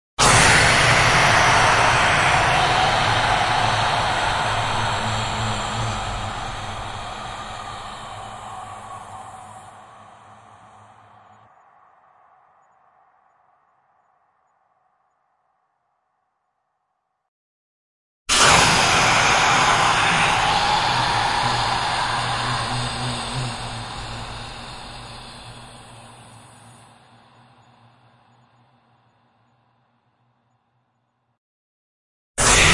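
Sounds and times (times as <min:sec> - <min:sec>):
choir whisper blasts: 0:00.2 - 0:11.4, 0:18.3 - 0:28.0.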